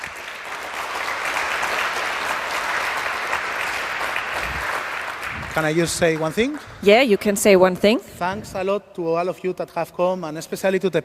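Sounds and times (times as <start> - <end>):
audience applause: 0.0 - 7.2
speech: 5.6 - 11.0.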